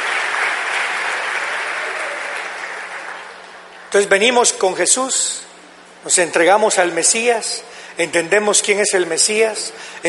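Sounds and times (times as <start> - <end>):
audience applause: 0.0 - 3.9
speech: 3.9 - 10.0.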